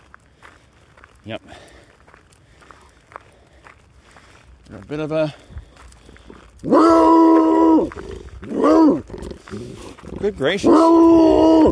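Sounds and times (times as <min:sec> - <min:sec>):
speech: 0:01.2 - 0:01.8, 0:04.7 - 0:05.6, 0:06.6 - 0:07.3, 0:07.9 - 0:11.7
neighbor's dog barking outside: 0:08.6 - 0:09.0.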